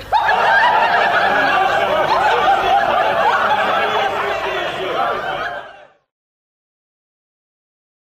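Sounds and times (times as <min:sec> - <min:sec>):
noisy merry crowd laughing and chattering: 0:00.0 - 0:06.1.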